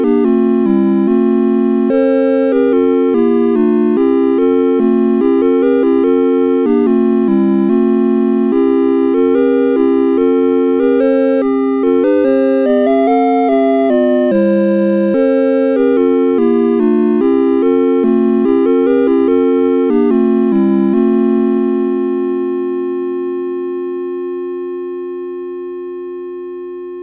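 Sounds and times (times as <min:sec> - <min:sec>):
carol melody: 0:00.0 - 0:27.0.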